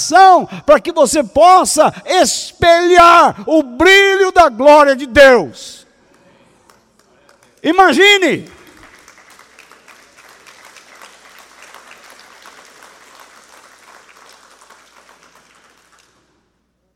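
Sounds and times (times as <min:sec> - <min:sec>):
speech: 0:00.1 - 0:05.8, 0:07.6 - 0:08.6
audience applause: 0:08.5 - 0:16.4.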